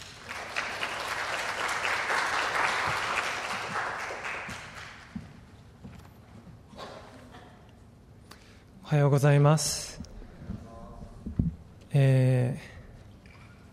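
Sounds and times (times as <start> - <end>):
audience clapping: 0.0 - 5.5
speech: 8.9 - 10.0, 12.0 - 12.7.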